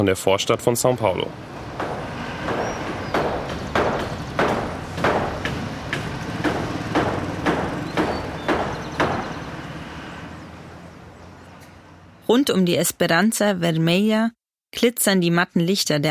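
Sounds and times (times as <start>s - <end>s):
speech: 0.0s - 1.6s, 12.3s - 16.0s
hammering a wooden frame: 1.5s - 10.0s.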